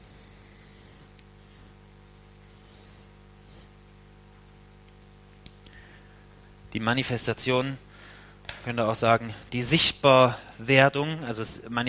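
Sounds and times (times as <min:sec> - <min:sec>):
handwriting of a single word: 0:00.0 - 0:01.8, 0:02.4 - 0:03.7
speech: 0:06.7 - 0:07.8, 0:08.6 - 0:11.8.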